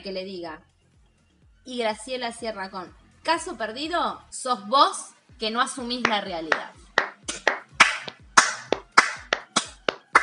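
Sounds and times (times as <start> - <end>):
speech: 0.0 - 0.8, 1.6 - 7.4
applause: 6.0 - 10.2.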